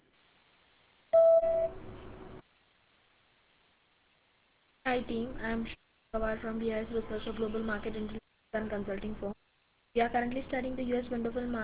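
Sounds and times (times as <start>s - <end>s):
voicemail beep: 1.2s - 1.8s
speech: 4.9s - 9.4s, 10.0s - 11.6s.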